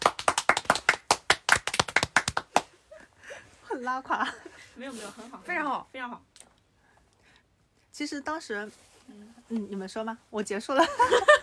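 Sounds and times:
hand clapping: 0.0 - 2.8
speech: 3.8 - 6.3, 8.0 - 11.4.

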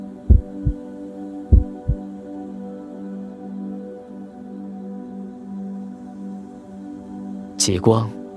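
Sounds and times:
slow heartbeat: 0.3 - 0.8, 1.5 - 2.0
speech: 7.6 - 8.2.

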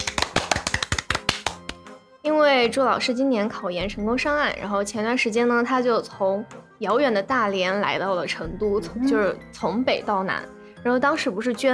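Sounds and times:
hand clapping: 0.0 - 2.0
speech: 2.5 - 11.7.

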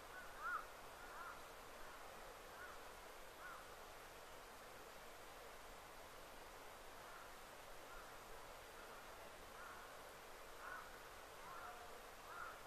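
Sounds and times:
soft bird calls in a quiet wild thicket: 0.0 - 3.7, 7.0 - 10.0, 10.6 - 12.6
faint steady hiss: 0.0 - 12.6.

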